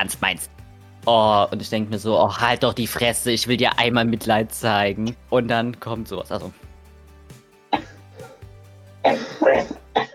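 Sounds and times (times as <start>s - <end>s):
speech: 0.0s - 6.6s, 9.0s - 9.8s
person coughing: 7.7s - 10.1s
throat clearing: 7.7s - 10.1s.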